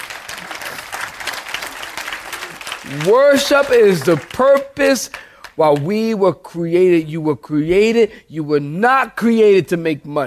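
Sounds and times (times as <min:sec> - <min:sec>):
a few audience members clapping hands: 0:00.0 - 0:06.1
speech: 0:02.8 - 0:10.2.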